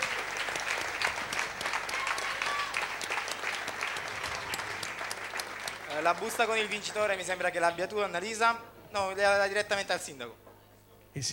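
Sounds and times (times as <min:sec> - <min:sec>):
audience applause: 0:00.0 - 0:07.8
speech: 0:06.0 - 0:10.4, 0:11.1 - 0:11.3.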